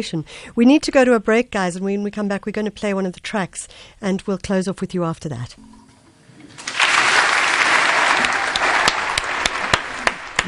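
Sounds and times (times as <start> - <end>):
speech: 0.0 - 5.8
applause: 6.6 - 10.4.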